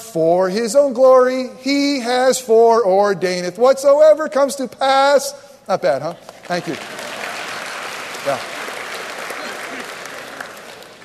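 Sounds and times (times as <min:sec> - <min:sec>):
speech: 0:00.1 - 0:07.0, 0:08.2 - 0:08.5
clapping: 0:06.2 - 0:11.0.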